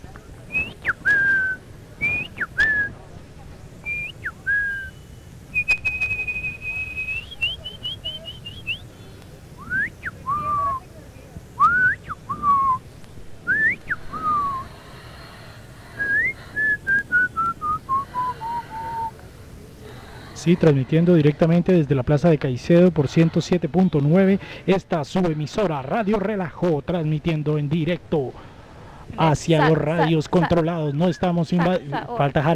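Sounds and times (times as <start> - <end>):
laughter: 0.0 - 32.5
person whistling a tune: 0.5 - 3.0, 3.8 - 8.9, 9.6 - 10.8, 11.6 - 12.8, 13.4 - 14.8, 16.0 - 19.2
speech: 20.4 - 28.5, 29.2 - 32.5.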